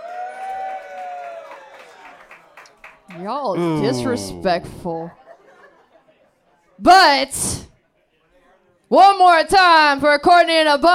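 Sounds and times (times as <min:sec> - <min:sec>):
whoops and shouting voices: 0:00.0 - 0:01.7, 0:03.5 - 0:04.6
audience clapping and cheering: 0:00.0 - 0:04.4
speech: 0:03.1 - 0:05.2, 0:06.8 - 0:07.7, 0:08.9 - 0:10.9
laughter: 0:03.5 - 0:06.5.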